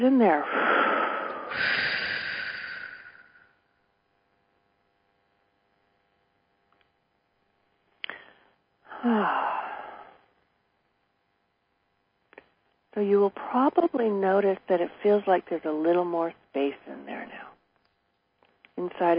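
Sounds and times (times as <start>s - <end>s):
speech: 0.0s - 0.8s, 13.0s - 17.5s, 18.8s - 19.1s
group breathing together during a guided energy-clearing meditation: 0.5s - 3.6s, 8.1s - 10.2s.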